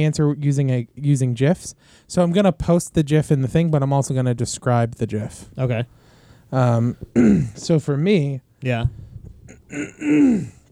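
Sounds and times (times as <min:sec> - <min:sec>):
speech: 0:00.0 - 0:10.6
throat clearing: 0:06.7 - 0:07.7, 0:09.4 - 0:10.7.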